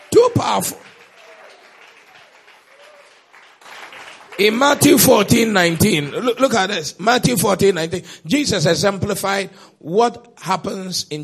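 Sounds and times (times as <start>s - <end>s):
audience clapping: 0.0s - 6.9s
speech: 0.4s - 1.0s, 4.4s - 11.2s.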